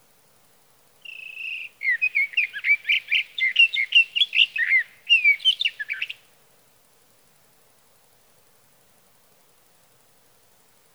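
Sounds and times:
sage thrasher song: 1.0s - 6.2s.

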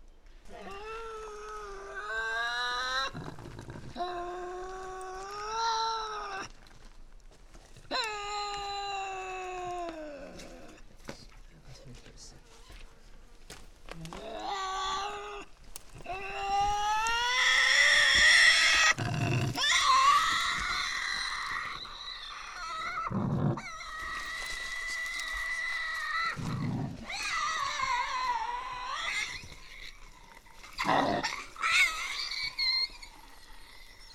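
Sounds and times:
Tasmanian devil calling: 0.4s - 6.7s, 7.8s - 10.9s, 14.0s - 34.1s.

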